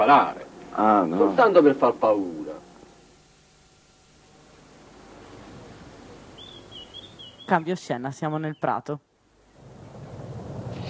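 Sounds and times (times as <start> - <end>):
speech: 0.0 - 2.4, 7.5 - 9.1
thunder: 9.6 - 10.8.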